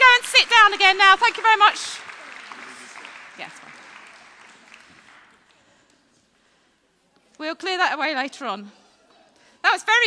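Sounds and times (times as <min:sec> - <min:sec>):
applause: 0:00.0 - 0:05.7
speech: 0:00.7 - 0:02.0, 0:07.4 - 0:08.8, 0:09.6 - 0:10.0.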